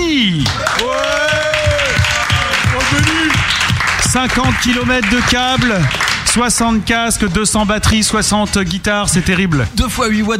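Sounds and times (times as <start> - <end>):
speech: 0.2 - 1.0, 4.1 - 10.3
audience applause: 0.4 - 6.4
long pitched cheering shouts: 0.5 - 3.4.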